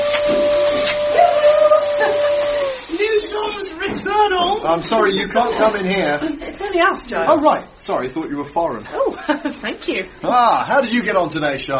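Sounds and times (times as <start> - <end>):
vacuum cleaner running loudly: 0.0 - 3.7
speech: 4.6 - 11.7.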